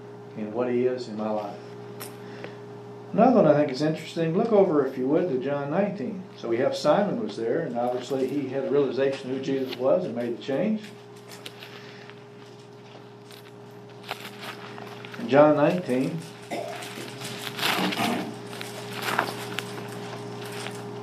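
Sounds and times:
speech: 0.4 - 1.8, 3.1 - 11.0, 15.3 - 16.3
Bible pages turning: 11.2 - 21.0.

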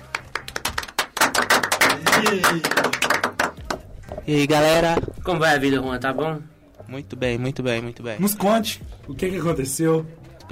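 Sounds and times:
audience clapping: 0.0 - 3.9
speech: 2.2 - 2.9, 4.2 - 10.5.

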